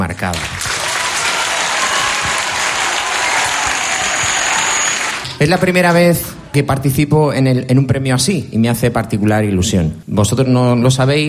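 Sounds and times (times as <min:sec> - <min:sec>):
audience applause: 0:00.0 - 0:05.3
speech: 0:00.1 - 0:00.6, 0:05.4 - 0:11.2.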